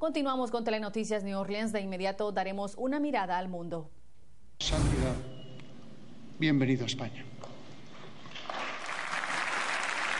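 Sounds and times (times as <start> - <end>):
speech: 0.0 - 4.0, 6.4 - 7.3
crowd applause: 8.3 - 10.1.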